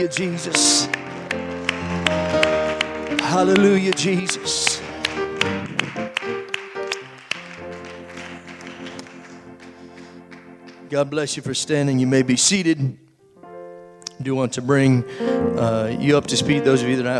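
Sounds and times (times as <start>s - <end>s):
speech: 0.0s - 1.4s, 3.3s - 4.8s, 10.9s - 13.1s, 14.2s - 17.1s
audience applauding: 0.0s - 10.9s.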